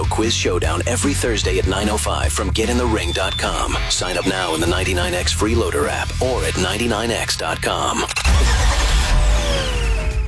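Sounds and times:
speech: 0.1s - 8.6s
car engine starting and revving in a traffic-report jingle: 8.0s - 10.2s.

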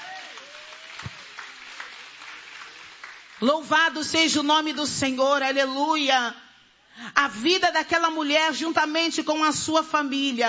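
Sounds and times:
audience clapping hands: 0.0s - 3.5s
speech: 3.4s - 6.4s, 7.0s - 10.4s.

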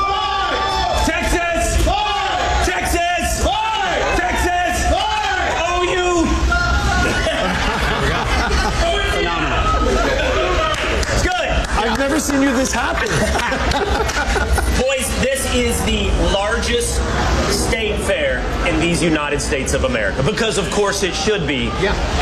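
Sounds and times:
state fair crowd shouting a response and cheering: 0.0s - 22.2s
laughter: 6.5s - 15.4s
speech: 15.6s - 22.2s.

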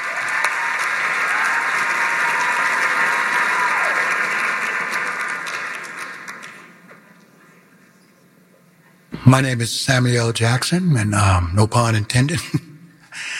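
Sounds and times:
audience applause: 0.0s - 7.1s
speech: 9.3s - 12.7s.

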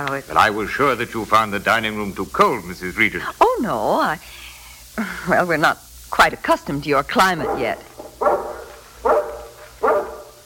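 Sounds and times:
speech: 0.0s - 4.4s, 5.0s - 7.9s
guard dog barking: 7.2s - 10.4s.

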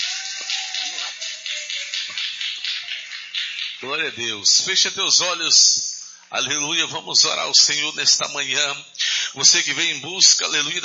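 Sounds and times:
audience applauding loudly: 0.0s - 4.2s
speech: 3.8s - 10.8s.

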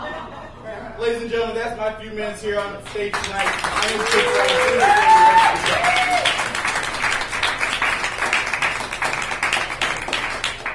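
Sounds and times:
speech: 1.0s - 6.4s
audience clapping: 2.5s - 10.7s.

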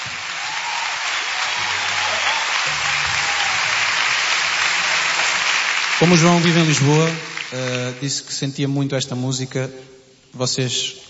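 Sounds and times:
crowd applauding: 0.0s - 8.2s
speech: 6.0s - 11.0s.

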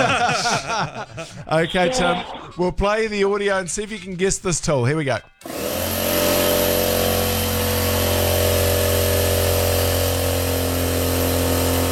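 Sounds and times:
laughter: 0.0s - 2.6s
speech: 0.8s - 5.7s
compact silent drive air compressor running: 5.4s - 11.9s.

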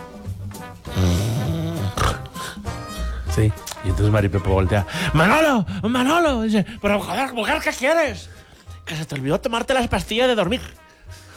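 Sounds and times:
person imitating snoring: 0.8s - 3.6s
speech: 3.4s - 11.2s.

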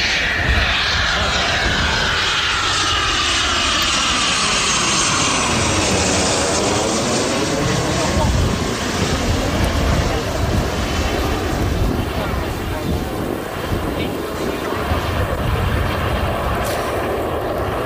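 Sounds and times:
Eurofighter combat jet roaring overhead during air festival practice flights in Gijón: 0.0s - 17.8s.

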